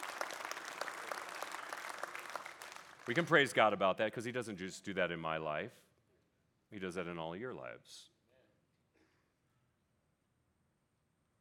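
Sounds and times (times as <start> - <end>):
audience applause: 0.0 - 3.6
speech: 3.1 - 5.9, 6.7 - 8.1.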